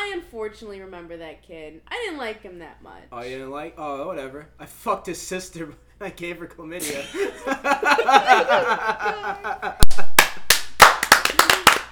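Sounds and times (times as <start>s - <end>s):
speech: 0.4s - 10.1s
laughter: 6.8s - 10.1s
hands clapping: 9.1s - 11.9s.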